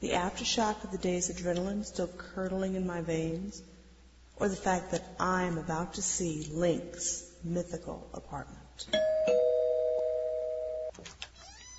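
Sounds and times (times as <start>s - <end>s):
speech: 0.0s - 3.8s, 4.4s - 9.2s
doorbell ringing: 9.0s - 10.9s.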